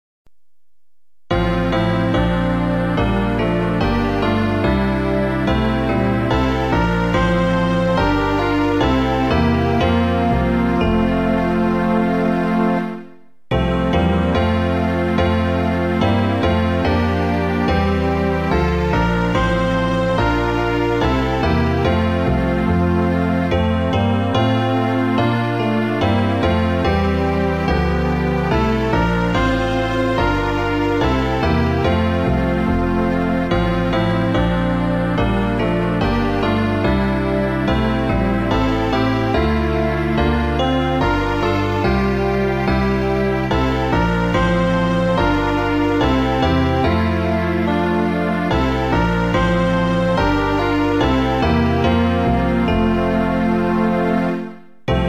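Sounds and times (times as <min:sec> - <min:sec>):
Christian hymn: 0:01.3 - 0:55.0.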